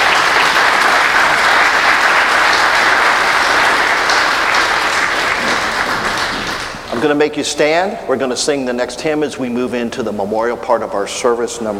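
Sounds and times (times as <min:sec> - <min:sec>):
church congregation applauding during a memorial service: 0:00.0 - 0:07.2
speech: 0:07.0 - 0:11.7.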